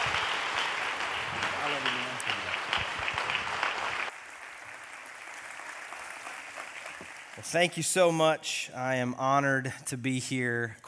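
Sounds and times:
church audience applause: 0.0s - 8.0s
speech: 7.4s - 10.8s.

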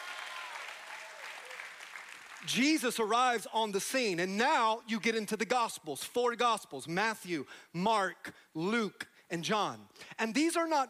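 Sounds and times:
people clapping: 0.0s - 3.4s
speech: 2.4s - 10.8s.

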